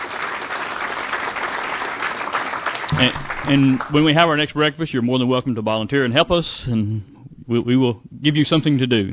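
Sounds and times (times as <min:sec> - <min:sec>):
audience applause for volunteers at a breakfast gathering: 0:00.0 - 0:04.6
speech: 0:03.0 - 0:09.1.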